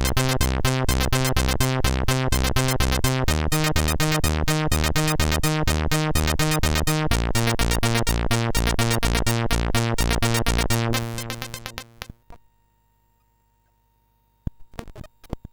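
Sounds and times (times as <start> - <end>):
MOS6581R3 SID chip music: 0.0 - 12.0.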